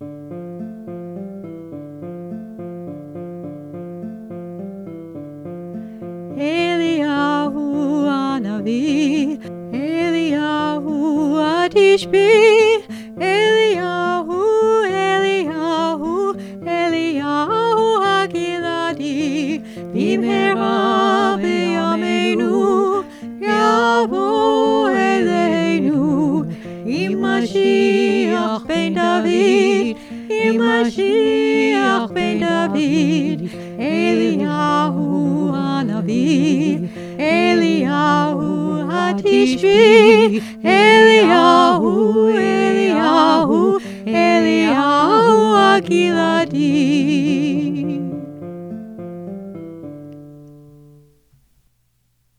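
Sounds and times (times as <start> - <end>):
guitar: 0.0 - 51.6
person singing: 6.4 - 48.3.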